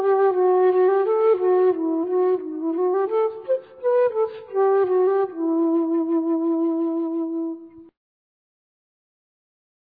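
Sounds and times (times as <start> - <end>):
hall crystal flute in D: 0.0 - 7.9.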